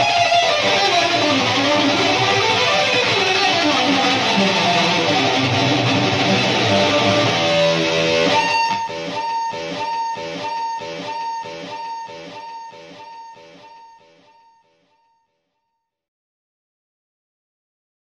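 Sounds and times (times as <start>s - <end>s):
instrumental metal music: 0.0s - 14.2s.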